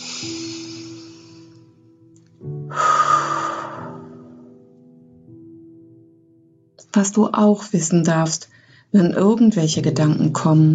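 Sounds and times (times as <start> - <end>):
deep breathing during a guided relaxation: 0.0 - 1.8, 2.6 - 4.5
soft, sustained musical drone: 0.0 - 5.6
speech: 0.2 - 0.6, 6.9 - 10.7.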